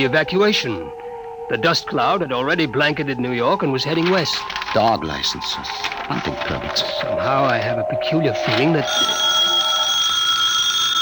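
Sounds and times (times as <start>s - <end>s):
speech: 0.0s - 9.5s
telephone bell ringing: 8.4s - 10.9s.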